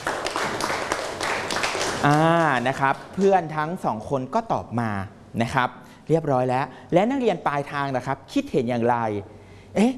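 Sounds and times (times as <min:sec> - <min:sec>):
classroom students clapping for a classmate: 0:00.0 - 0:03.4
speech: 0:02.0 - 0:09.9.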